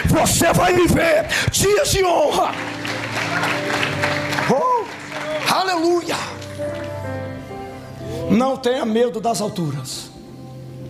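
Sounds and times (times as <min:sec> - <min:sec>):
speech: 0:00.1 - 0:04.7, 0:05.5 - 0:06.9, 0:08.3 - 0:10.1
audience applause: 0:02.2 - 0:07.1.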